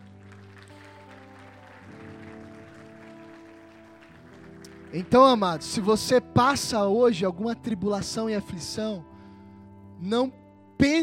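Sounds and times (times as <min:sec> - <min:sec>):
audience applause: 0:00.0 - 0:05.9
speech: 0:04.9 - 0:09.1, 0:10.0 - 0:11.0.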